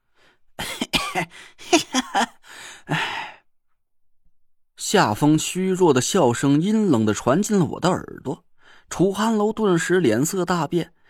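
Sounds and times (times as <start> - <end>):
man coughing: 0.6 - 3.3
speech: 1.2 - 3.1, 4.9 - 11.0.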